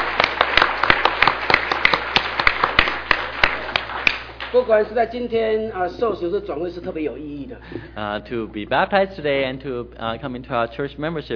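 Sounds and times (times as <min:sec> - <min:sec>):
audience applause: 0:00.0 - 0:04.6
speech: 0:04.5 - 0:11.3.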